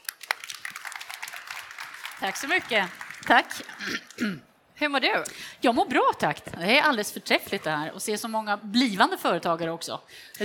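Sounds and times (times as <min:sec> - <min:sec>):
audience applause: 0:00.0 - 0:04.2
speech: 0:02.2 - 0:10.4.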